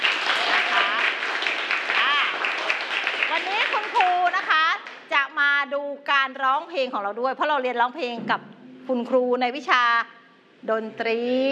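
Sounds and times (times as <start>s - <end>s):
group clapping: 0.0s - 5.1s
high excited voices calling out: 0.4s - 1.2s
speech: 6.6s - 11.5s.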